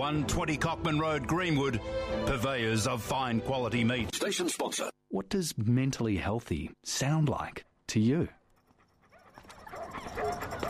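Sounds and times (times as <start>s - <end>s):
speech: 0.0s - 8.4s
dog whimpering and yipping: 8.6s - 10.6s.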